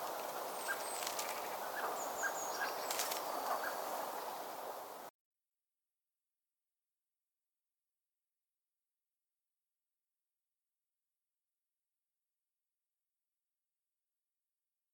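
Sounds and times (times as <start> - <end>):
common blackbird Turdus merula chuck calls: 0.0 - 4.5.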